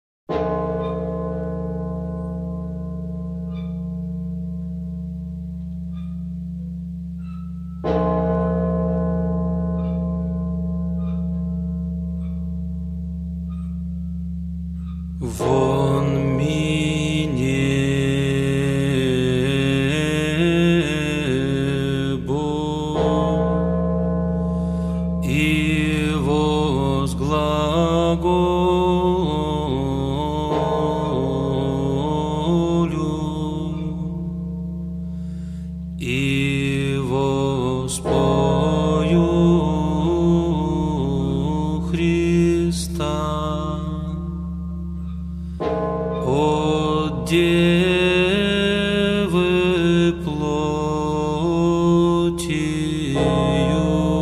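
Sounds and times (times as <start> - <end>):
blagovest church bell ringing: 0.3 - 54.1
irmos liturgical chant: 15.1 - 23.8, 25.2 - 34.5, 36.0 - 44.8, 46.2 - 54.1.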